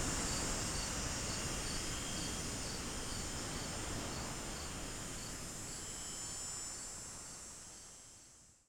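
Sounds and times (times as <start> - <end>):
cicadas: 0.0 - 6.9
wind: 0.0 - 8.6.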